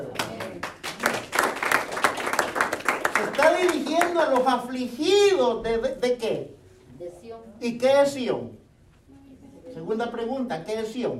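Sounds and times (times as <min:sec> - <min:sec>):
audience clapping: 0:00.0 - 0:04.7
speech: 0:03.6 - 0:08.6, 0:09.9 - 0:11.1.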